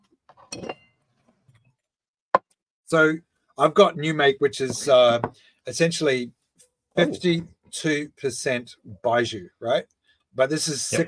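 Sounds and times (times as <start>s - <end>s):
drinking glass clinking while cleaned before a baijiu tasting: 0.5s - 1.0s
speech: 2.9s - 6.4s, 7.0s - 11.0s.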